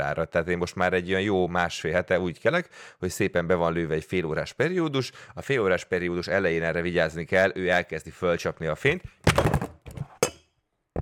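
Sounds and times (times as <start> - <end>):
speech: 0.0 - 9.5
microphone being knocked: 9.2 - 10.1.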